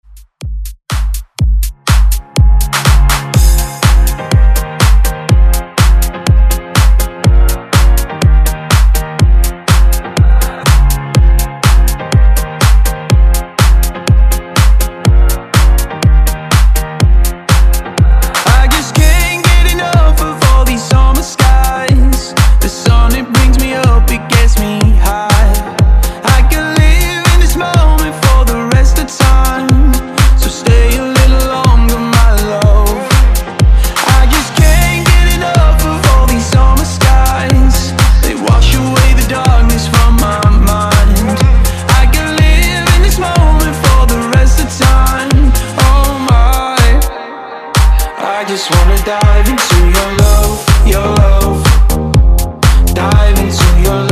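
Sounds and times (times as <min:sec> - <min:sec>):
house music: 0:00.0 - 0:54.1.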